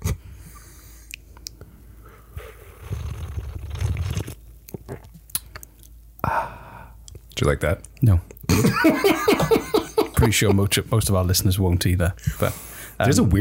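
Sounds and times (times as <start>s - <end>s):
person sipping espresso: 2.2s - 5.6s
speech: 7.4s - 9.4s, 10.2s - 13.3s
laughter: 8.5s - 10.8s.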